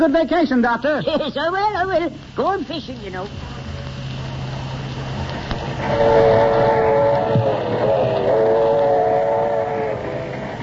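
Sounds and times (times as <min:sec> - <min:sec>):
speech: 0:00.0 - 0:03.6, 0:05.8 - 0:06.7
passenger train running on rails: 0:05.6 - 0:10.6
wavering horn-like tone: 0:05.7 - 0:10.6.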